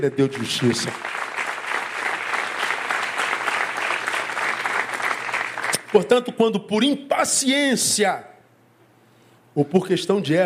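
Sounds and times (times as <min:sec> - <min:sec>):
speech: 0:00.0 - 0:01.2, 0:05.9 - 0:08.3, 0:09.6 - 0:10.4
audience applauding loudly: 0:00.0 - 0:06.2.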